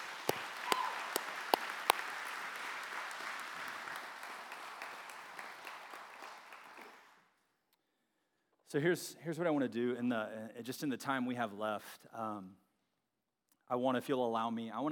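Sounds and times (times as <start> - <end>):
audience applause: 0.0 - 7.2
speech: 8.7 - 12.6, 13.7 - 14.9.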